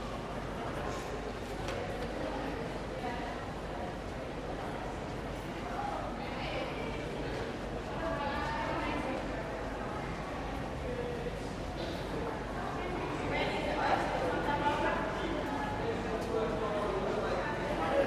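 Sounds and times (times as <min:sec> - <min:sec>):
train station ambience: 0:00.0 - 0:18.0.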